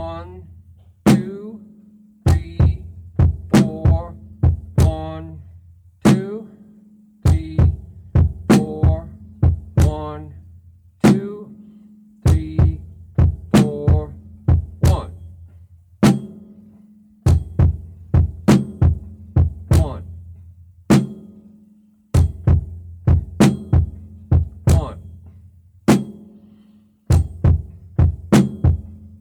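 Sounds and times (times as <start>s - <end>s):
drum beat: 0.0s - 1.6s, 2.3s - 5.4s, 6.1s - 6.4s, 7.3s - 10.4s, 12.3s - 15.4s, 16.0s - 16.5s, 17.2s - 21.4s, 22.2s - 26.3s, 27.1s - 29.1s.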